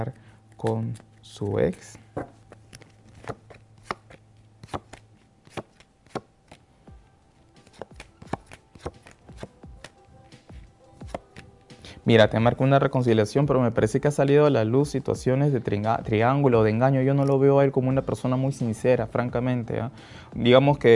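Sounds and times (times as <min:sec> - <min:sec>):
speech: 0:00.0 - 0:02.4, 0:12.1 - 0:20.9
tarot cards being shuffled and handled for a reading: 0:00.5 - 0:06.7, 0:07.3 - 0:11.8.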